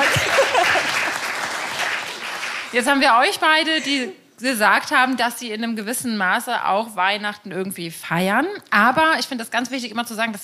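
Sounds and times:
laughter: 0:00.0 - 0:01.3
audience applause: 0:00.0 - 0:02.8
speech: 0:02.7 - 0:10.4.

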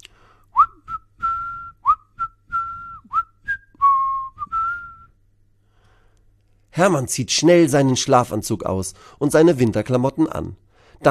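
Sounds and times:
cheerful whistled tune: 0:00.5 - 0:05.2
speech: 0:06.8 - 0:11.0.

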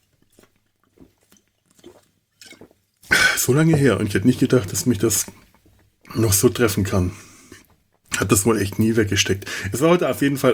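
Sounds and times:
person sipping a drink: 0:00.0 - 0:08.1
speech: 0:03.4 - 0:05.4, 0:06.2 - 0:07.3, 0:08.2 - 0:10.5.

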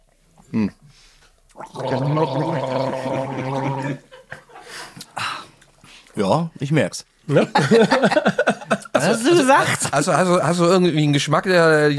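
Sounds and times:
speech: 0:00.5 - 0:00.8, 0:01.6 - 0:04.1, 0:06.2 - 0:11.9
several people gargling a drink: 0:01.6 - 0:04.2
brief laughter: 0:03.8 - 0:05.0, 0:07.4 - 0:10.0.

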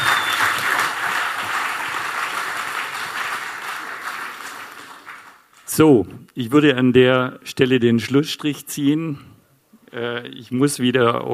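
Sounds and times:
audience applause: 0:00.0 - 0:05.5
speech: 0:05.8 - 0:09.3, 0:10.0 - 0:11.3.

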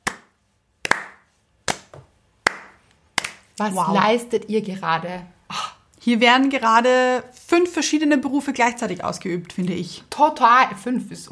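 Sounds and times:
slow clap: 0:00.0 - 0:03.6
speech: 0:03.6 - 0:05.4, 0:06.0 - 0:11.3.

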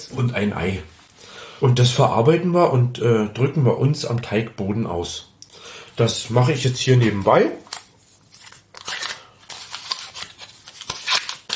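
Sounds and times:
speech: 0:00.0 - 0:01.0, 0:01.6 - 0:07.6
butter paper wrapper crinkling and rustling: 0:07.6 - 0:11.5.

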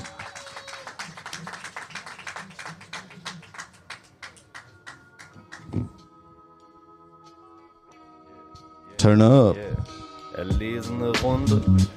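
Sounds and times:
audience applause: 0:00.0 - 0:05.6
speech: 0:09.0 - 0:11.9.

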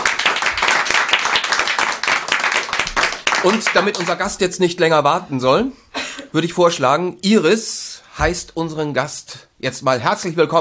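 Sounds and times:
crowd applauding: 0:00.0 - 0:04.4
speech: 0:03.4 - 0:10.5.

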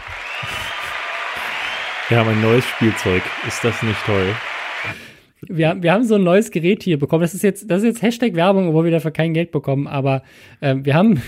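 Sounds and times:
laughter: 0:00.0 - 0:04.5
applause: 0:00.0 - 0:05.1
speech: 0:02.1 - 0:11.2.

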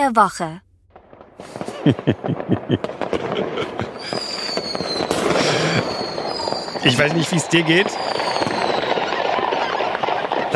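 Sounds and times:
speech: 0:00.0 - 0:00.6, 0:01.4 - 0:06.0, 0:06.8 - 0:08.3
fireworks cracking and popping: 0:00.9 - 0:10.5
laughter: 0:01.4 - 0:04.6, 0:05.2 - 0:06.1, 0:06.8 - 0:07.9
thin whistling tone: 0:04.1 - 0:07.2, 0:07.9 - 0:09.0.

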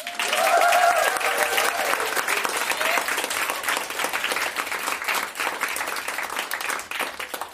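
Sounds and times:
live audience at a recording clapping and cheering: 0:00.0 - 0:07.5
person whooping: 0:00.2 - 0:03.1.

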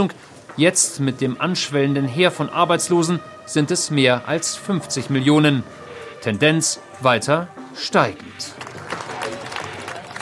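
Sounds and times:
speech: 0:00.0 - 0:08.7
indistinct voices: 0:00.0 - 0:10.2
police officers applauding departing medical staff: 0:08.5 - 0:10.2.

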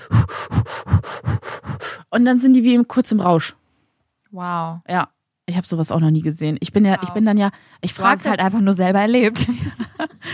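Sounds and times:
rapid inhaling from a balloon: 0:00.0 - 0:02.1
speech: 0:02.1 - 0:03.6, 0:04.3 - 0:10.3
laughter: 0:09.4 - 0:10.3.

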